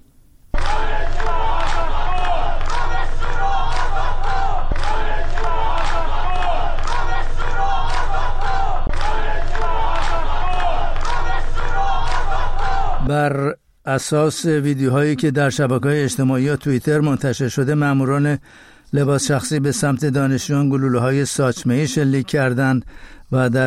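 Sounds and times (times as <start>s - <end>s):
large crowd chanting a protest slogan: 0.6s - 13.1s
speech: 13.1s - 23.6s.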